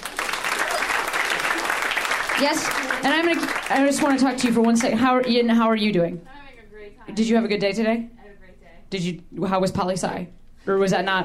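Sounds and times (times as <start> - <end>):
audience applause: 0.0 - 5.0
speech: 2.4 - 6.4, 7.1 - 8.2, 8.9 - 11.2.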